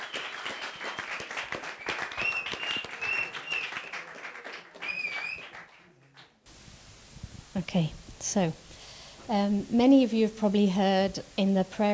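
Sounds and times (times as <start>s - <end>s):
audience applause: 0.0s - 6.4s
speech: 7.6s - 8.6s, 9.3s - 11.9s.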